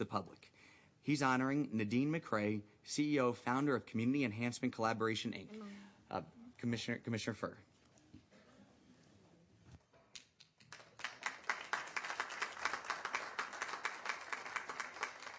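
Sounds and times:
speech: 0.0 - 7.7
audience applause: 10.7 - 15.3.

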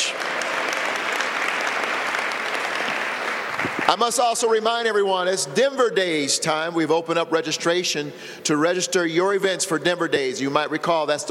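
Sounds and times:
audience applause: 0.0 - 4.3
speech: 3.9 - 11.2.

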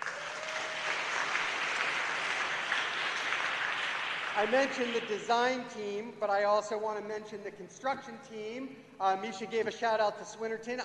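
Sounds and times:
applause: 0.0 - 5.6
speech: 4.4 - 10.8.

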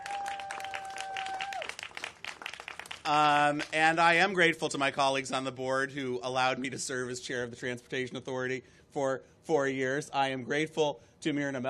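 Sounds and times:
audience applause: 0.0 - 3.7
speech: 3.1 - 11.6.

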